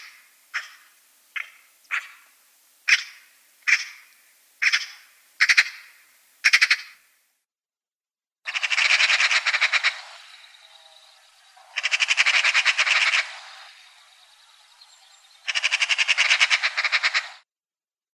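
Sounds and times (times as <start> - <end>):
Eurasian magpie rattling chatter: 0.0 - 7.0, 8.5 - 10.3, 11.7 - 13.4, 15.5 - 17.4.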